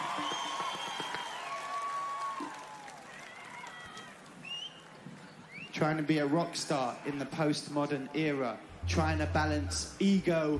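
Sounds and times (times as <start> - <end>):
audience applause: 0.0 - 4.5
whistles and whoops: 0.0 - 4.9
speech: 5.8 - 10.5.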